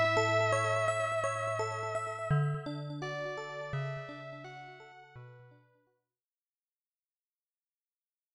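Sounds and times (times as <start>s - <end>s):
electric piano: 0.0s - 5.6s.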